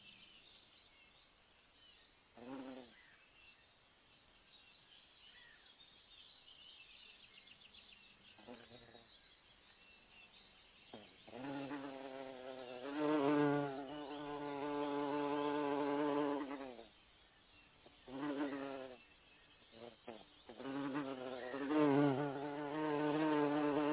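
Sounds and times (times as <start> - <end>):
honeybee buzzing: 2.4 - 2.9, 10.9 - 16.9, 18.1 - 19.0, 19.8 - 23.9.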